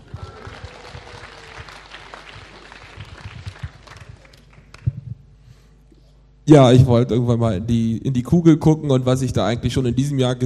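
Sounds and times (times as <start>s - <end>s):
applause: 0.0s - 5.2s
speech: 6.5s - 10.4s.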